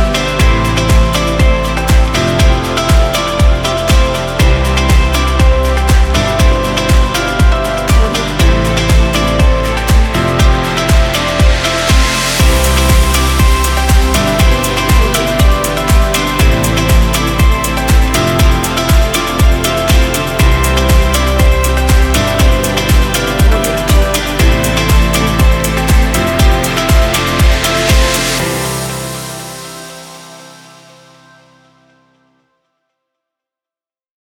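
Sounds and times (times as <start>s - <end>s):
corporate background music: 0.0s - 32.1s.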